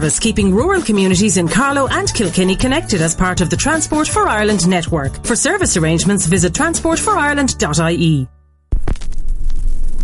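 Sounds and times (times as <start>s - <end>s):
speech: 0.0s - 8.4s
record needle dropping onto vinyl: 8.7s - 10.0s.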